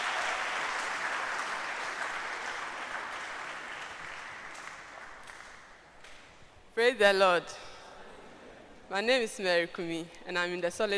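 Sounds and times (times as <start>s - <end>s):
sustained audience applause: 0.0s - 6.3s
speech: 6.8s - 7.6s, 8.9s - 10.9s.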